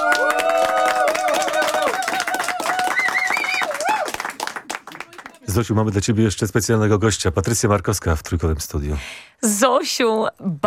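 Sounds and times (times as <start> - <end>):
audience applause: 0.0 - 5.5
speech: 5.6 - 10.6.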